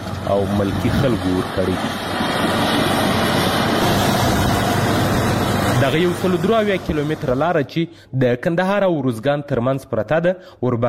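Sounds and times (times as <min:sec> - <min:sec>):
loaders' heavy engine drone repairing the Uruzgan–Kandahar highway: 0:00.0 - 0:07.6
speech: 0:00.3 - 0:02.6, 0:05.8 - 0:10.8.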